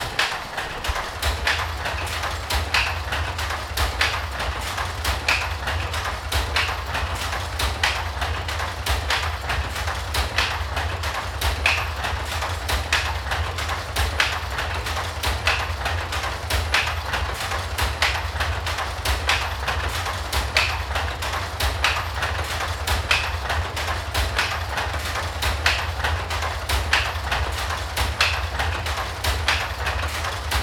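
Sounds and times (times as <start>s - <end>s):
looms weaving in a South India street: 0.0s - 30.6s.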